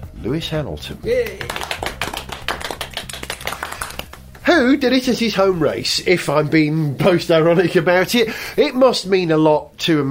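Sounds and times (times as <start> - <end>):
speech: 0.2 - 1.9, 4.6 - 10.0
small ripple of applause: 1.2 - 4.2.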